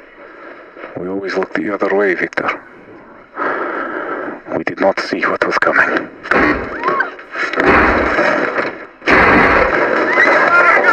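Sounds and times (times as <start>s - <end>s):
speech: 1.0s - 2.8s, 4.5s - 6.7s
gunfire bursts: 7.6s - 10.9s.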